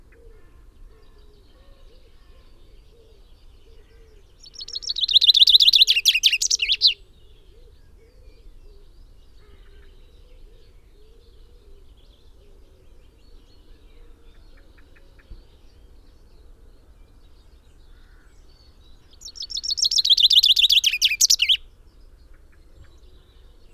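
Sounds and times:
common chaffinch Fringilla coelebs song: 0:04.2 - 0:07.0, 0:19.0 - 0:21.7.

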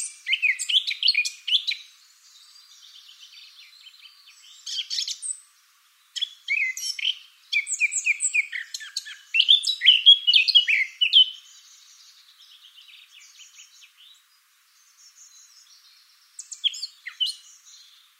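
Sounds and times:
Eurasian blackcap singing: 0:00.0 - 0:05.4, 0:06.1 - 0:18.1.

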